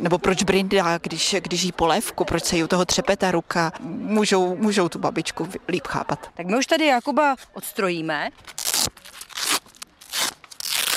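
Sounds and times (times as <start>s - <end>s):
speech: 0.0s - 9.2s
velcro straps on a suit being pulled open: 8.4s - 10.9s.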